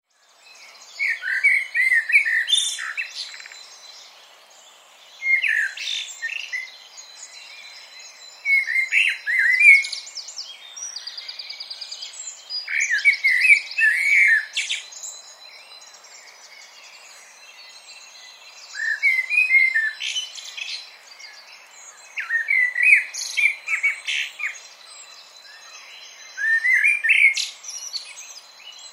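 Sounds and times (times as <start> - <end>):
common blackbird singing: 0.1 - 28.9.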